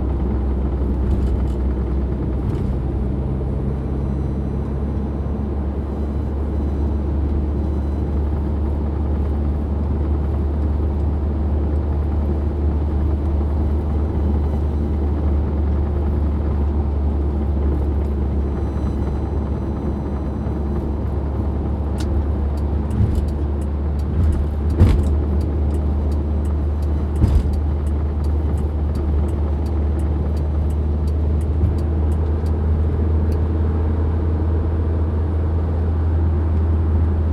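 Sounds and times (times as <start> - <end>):
old car engine and road noise on a highway at night in Taiwan: 0.0 - 37.3
rattles and ticks: 22.0 - 32.3.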